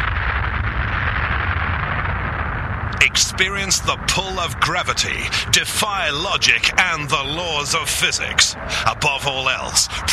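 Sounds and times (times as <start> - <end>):
rocket blast-off effect for the Hyper Blaster amusement ride: 0.0 - 5.6
speech: 3.0 - 10.1.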